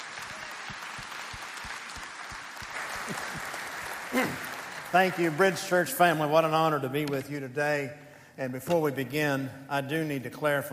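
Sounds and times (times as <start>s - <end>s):
audience applause welcoming a guest speaker at a church service: 0.0s - 6.3s
speech: 4.2s - 10.7s.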